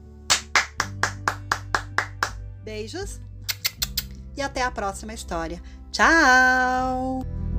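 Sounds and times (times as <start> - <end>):
hands clapping: 0.3 - 2.4, 3.5 - 4.1
speech: 2.6 - 3.3, 4.4 - 7.4.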